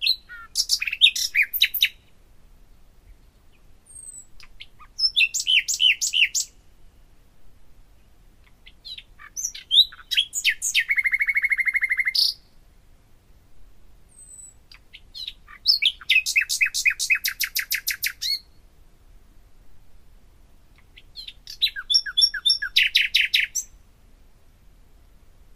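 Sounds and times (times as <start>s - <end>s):
common nightingale singing: 0.0s - 2.0s, 3.9s - 6.6s, 8.8s - 12.5s, 14.1s - 18.6s, 21.0s - 23.7s.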